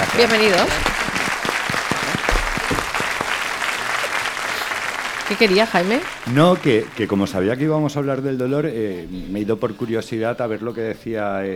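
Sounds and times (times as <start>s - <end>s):
applause: 0.0s - 7.7s
speech: 0.2s - 0.9s, 5.3s - 11.5s.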